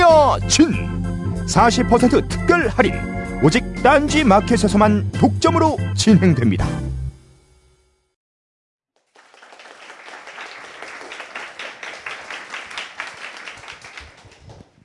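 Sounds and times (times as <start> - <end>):
speech: 0.4 - 6.9
audience clapping: 9.0 - 14.8.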